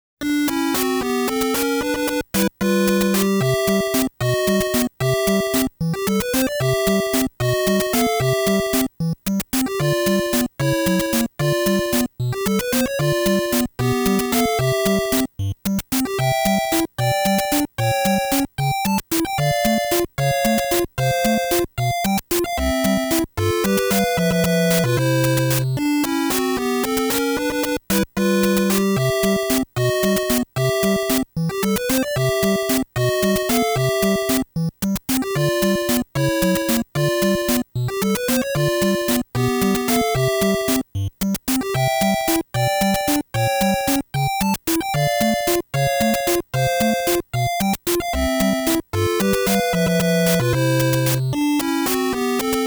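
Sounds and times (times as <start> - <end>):
underwater game background music: 0.2 - 52.6.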